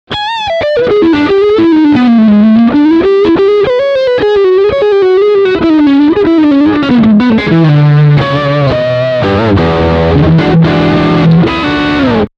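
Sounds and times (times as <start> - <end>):
electric guitar lick on front single-coil pickup: 0.1 - 12.3.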